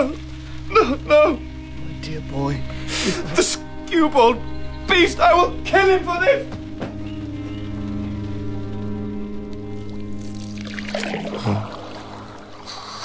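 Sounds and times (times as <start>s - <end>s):
low humming drone: 0.0s - 5.7s, 6.5s - 13.0s
speech: 0.8s - 6.6s, 11.0s - 11.8s
water splashing: 9.8s - 13.0s.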